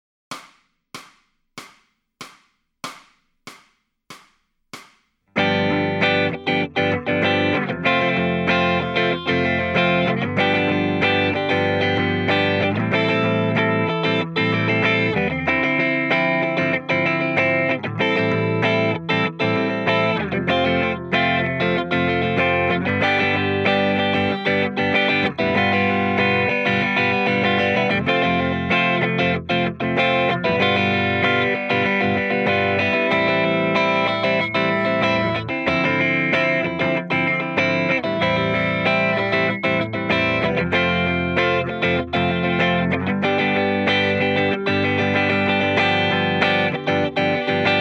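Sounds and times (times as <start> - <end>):
electric guitar lead backing track: 5.4 - 47.7.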